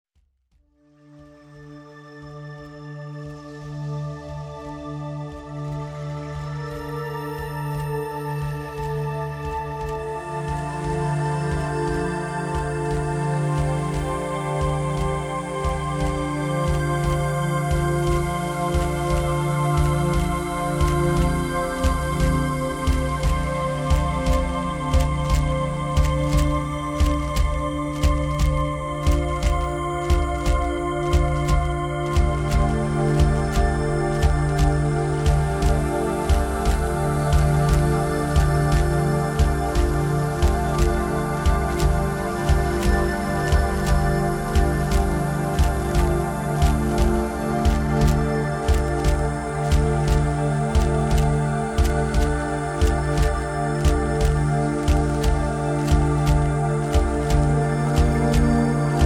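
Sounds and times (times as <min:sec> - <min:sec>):
drums: 0:05.3 - 0:59.0.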